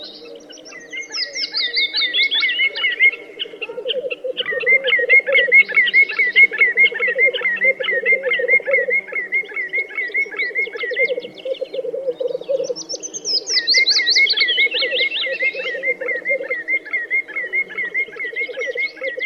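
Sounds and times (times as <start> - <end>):
black grouse rolling bubbling cooing: 2.4 - 12.9, 14.4 - 19.2.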